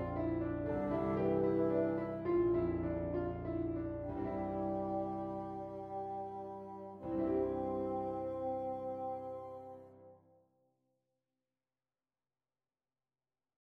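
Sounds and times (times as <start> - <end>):
bassoon: 0.0 - 10.2.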